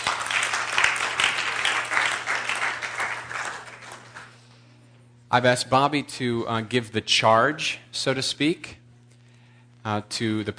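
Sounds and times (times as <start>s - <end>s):
audience clapping: 0.0s - 4.6s
speech: 5.3s - 8.8s, 9.8s - 10.5s.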